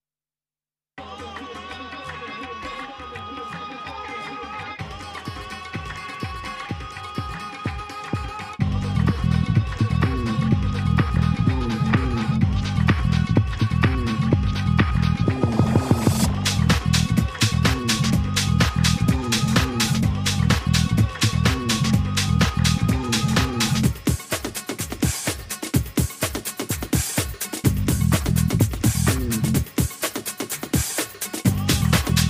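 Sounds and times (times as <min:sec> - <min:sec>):
house techno music: 0:07.2 - 0:32.2.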